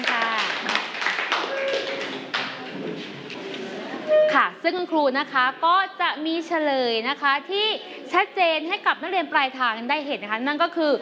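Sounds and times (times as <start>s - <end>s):
classroom group clapping for a student group: 0.0s - 3.6s
speech: 4.6s - 11.0s.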